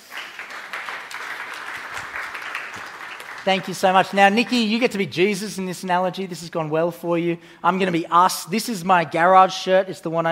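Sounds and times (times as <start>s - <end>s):
audience round of applause: 0.0s - 4.2s
speech: 3.4s - 10.2s.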